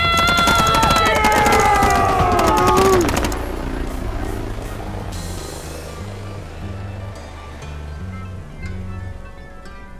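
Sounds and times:
gunfire at a helicopter: 0.0s - 4.1s.

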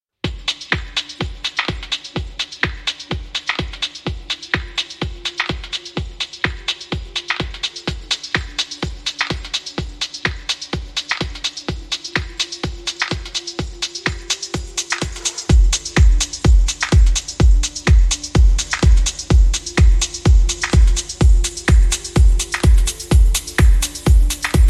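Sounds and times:
melodic organic house techno electronica: 0.2s - 24.6s.

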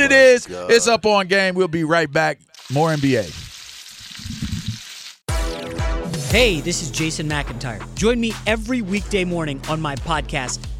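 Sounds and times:
speech: 0.1s - 3.5s, 6.3s - 10.7s
bacon crackling in hot frying grease: 2.6s - 5.2s.

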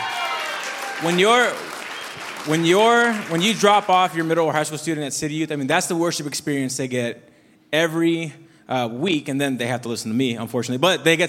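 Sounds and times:
audience applause: 0.0s - 4.5s
speech: 1.0s - 1.7s, 2.4s - 11.2s.

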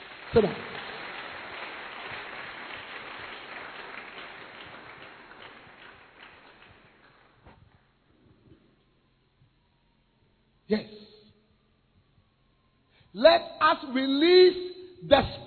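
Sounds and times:
audience applause for young people: 0.0s - 7.8s
speech: 0.3s - 0.7s, 13.2s - 15.3s.

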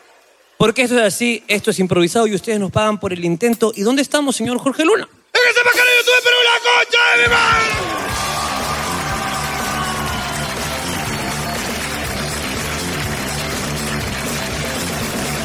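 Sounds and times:
speech: 0.6s - 7.8s
audience applause and cheering: 7.2s - 15.4s.

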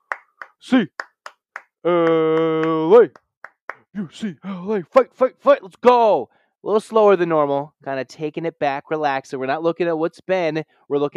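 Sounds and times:
audience hand claps: 0.0s - 3.9s
speech: 0.6s - 1.0s, 1.8s - 3.2s, 4.0s - 11.1s.

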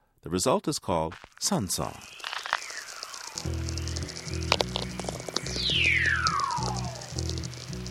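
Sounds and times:
speech: 0.2s - 2.3s, 3.4s - 3.6s
aurora borealis natural radio crackling clicks: 1.2s - 7.8s
aurora borealis natural radio descending whistles: 2.0s - 7.2s.

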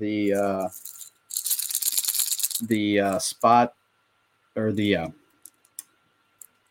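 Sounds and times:
person talking: 0.0s - 0.9s, 2.6s - 3.8s, 4.6s - 5.2s
LV fishing lure bait shaken with a marbly small rattle: 0.3s - 3.2s.

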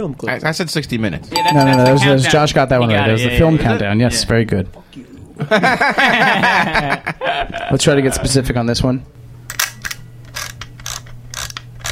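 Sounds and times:
speech: 0.0s - 9.6s
laughter: 5.4s - 7.7s
ratcheting clicks of a manual-advance film camera being wound: 9.5s - 11.8s.

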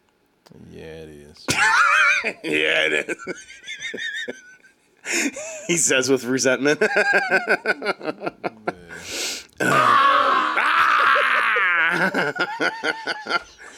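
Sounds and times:
speech: 0.5s - 4.5s, 5.1s - 10.1s, 12.0s - 13.7s
person laughing: 1.5s - 5.8s, 6.8s - 9.8s, 10.5s - 13.7s
person imitating a werewolf roar: 9.6s - 12.0s.

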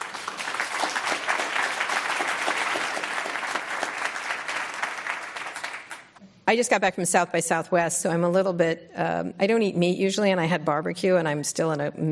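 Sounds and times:
audience applause welcoming a speaker onto the stage: 0.0s - 6.2s
speech: 6.5s - 12.0s.

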